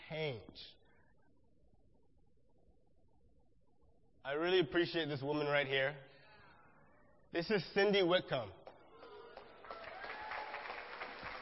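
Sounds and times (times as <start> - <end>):
speech: 0.1 - 0.8, 4.2 - 6.1, 7.3 - 8.6
audience clapping: 8.6 - 11.4.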